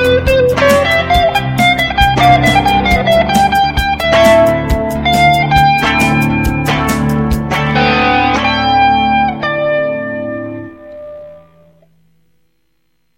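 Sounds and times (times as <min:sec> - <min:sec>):
drums: 0:00.0 - 0:09.3
bass: 0:00.0 - 0:10.7
keyboard: 0:00.0 - 0:11.9
rhythm guitar: 0:00.0 - 0:12.5.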